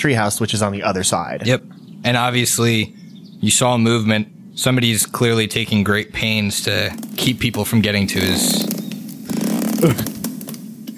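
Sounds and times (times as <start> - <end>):
speech: 0.0 - 8.7, 9.8 - 10.2
sharp crackling snaps: 6.6 - 10.9
ropes creaking under strain: 6.7 - 10.9.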